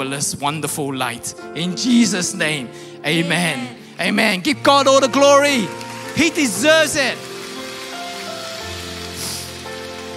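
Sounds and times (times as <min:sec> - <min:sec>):
speech: 0:00.0 - 0:07.3
audience clapping: 0:05.4 - 0:10.1.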